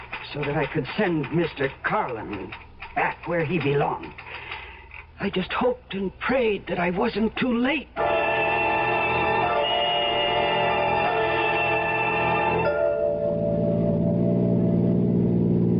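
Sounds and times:
speech: 0.3s - 4.2s, 5.2s - 8.0s
car engine roaring at high revs: 8.1s - 15.7s.

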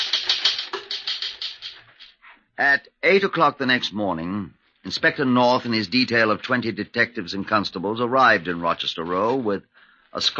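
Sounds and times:
typewriter keys clacking: 0.0s - 2.2s
speech: 2.6s - 10.3s.

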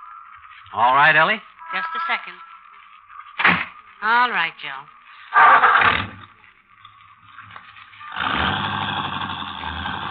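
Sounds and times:
speech: 0.6s - 2.5s, 4.0s - 6.1s
car engine starting and driving off: 8.1s - 10.0s.

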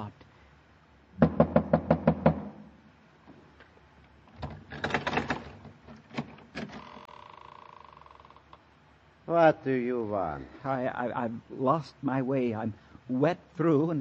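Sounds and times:
bronze idol knocking on wet black wooden door: 1.2s - 2.6s
speech: 9.3s - 13.9s.

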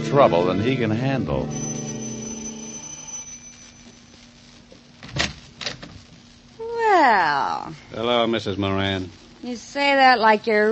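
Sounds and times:
speech: 0.1s - 1.8s, 7.1s - 10.7s
apartment doorbell ringing: 1.4s - 4.2s.

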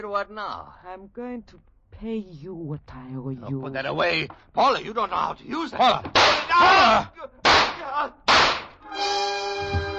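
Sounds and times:
speech: 0.0s - 8.3s
pistol gunshots: 6.1s - 6.5s, 7.4s - 8.8s.

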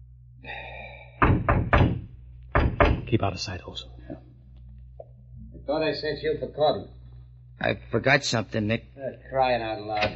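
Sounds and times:
knocking on a door: 1.2s - 3.2s
speech: 3.1s - 4.3s, 5.7s - 7.0s, 7.6s - 10.1s.

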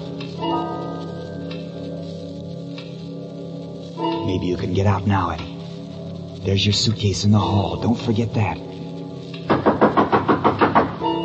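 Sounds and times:
low constant hum: 0.0s - 9.7s
speech: 4.3s - 5.5s, 6.4s - 8.7s
firm knocks on a door: 9.5s - 11.0s.

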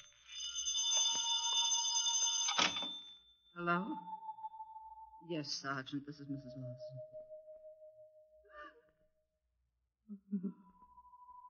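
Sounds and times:
telephone bell ringing: 0.0s - 4.7s
speech: 3.6s - 4.2s, 5.2s - 7.2s, 10.1s - 10.6s.

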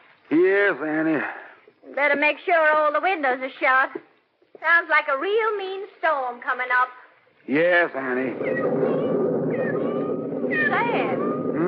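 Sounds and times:
speech: 0.3s - 9.0s, 10.5s - 11.2s
kittens mewing: 8.1s - 11.6s.

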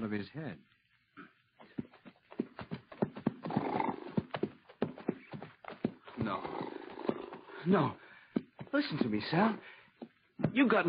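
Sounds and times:
speech: 0.0s - 0.8s, 7.6s - 8.0s, 8.7s - 9.7s, 10.6s - 10.8s
horse hooves trotting: 0.8s - 10.8s
horse whinny: 3.5s - 4.2s, 6.2s - 7.5s.

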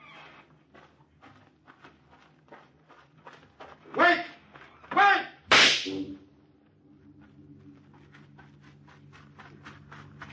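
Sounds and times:
single gunshot fired to get attention: 5.5s - 6.0s.

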